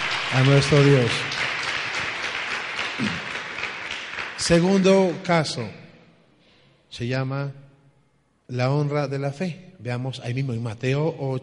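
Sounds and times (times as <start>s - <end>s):
audience applause: 0.0s - 5.3s
speech: 0.3s - 1.3s, 3.0s - 3.3s, 4.5s - 5.8s, 6.9s - 7.6s, 8.5s - 11.4s.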